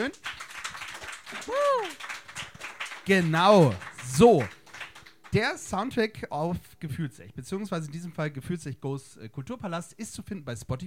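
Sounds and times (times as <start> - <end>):
speech: 0.0 - 0.3, 1.4 - 2.1, 3.1 - 4.6, 5.3 - 10.8
audience applauding: 0.0 - 5.7.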